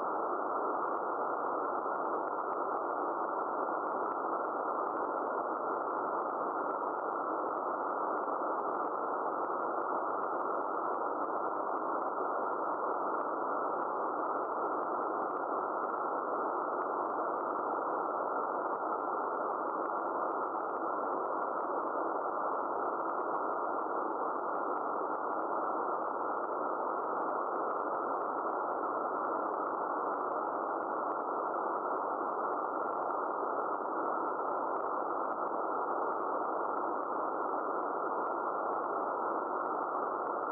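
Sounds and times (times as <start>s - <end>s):
background noise: 0.0s - 40.5s.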